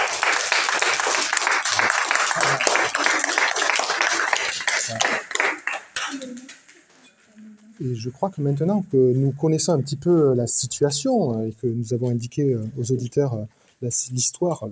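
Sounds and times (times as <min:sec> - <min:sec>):
crowd applauding: 0:00.0 - 0:06.5
speech: 0:07.8 - 0:14.7.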